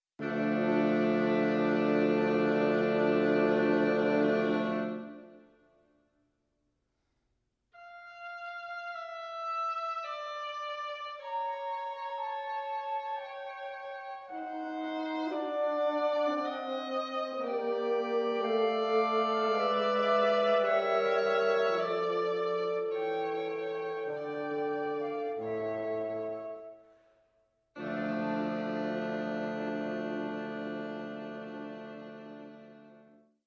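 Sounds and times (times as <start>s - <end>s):
quintet playing: 0.2s - 5.4s, 7.8s - 26.8s, 27.8s - 33.2s.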